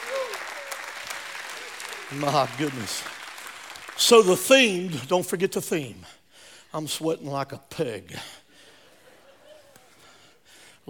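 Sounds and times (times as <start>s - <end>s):
audience clapping hands: 0.0s - 5.4s
speech: 2.1s - 3.2s, 4.0s - 8.4s
laughter: 8.7s - 10.0s.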